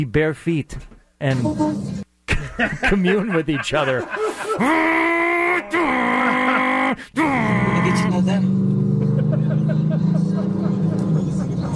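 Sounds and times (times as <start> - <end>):
speech: 0.0 - 2.0, 2.6 - 6.2, 6.9 - 8.6
laughter: 2.3 - 8.2, 8.8 - 11.7
souped-up truck engine roaring past: 7.7 - 11.7.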